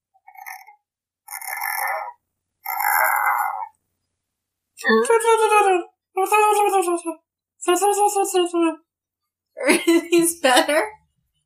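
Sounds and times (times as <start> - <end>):
voice imitating a cricket opening a squeaky door: 0.2 - 3.8
speech: 4.8 - 8.8, 9.6 - 11.0.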